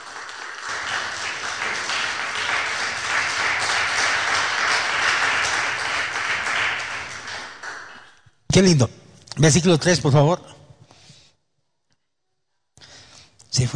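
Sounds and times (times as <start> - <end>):
audience applause: 0.0 - 8.2
speech: 8.6 - 10.6, 13.6 - 13.7.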